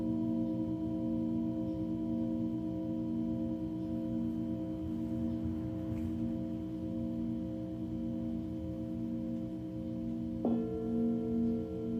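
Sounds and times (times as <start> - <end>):
singing bowl humming with pulsing drone and ringing tones: 0.0 - 11.9
bright singing bowl strike: 3.4 - 11.9.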